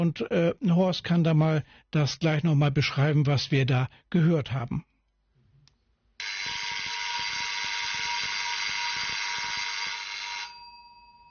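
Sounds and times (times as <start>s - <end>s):
speech: 0.0s - 4.9s
railway telephone ringing call signal: 6.2s - 11.2s.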